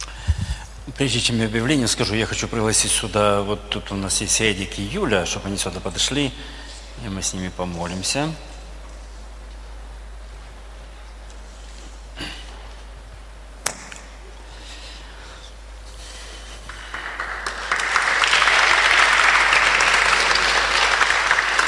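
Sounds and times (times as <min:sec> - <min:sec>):
speech: 0:01.0 - 0:08.5
audience clapping: 0:16.6 - 0:21.6.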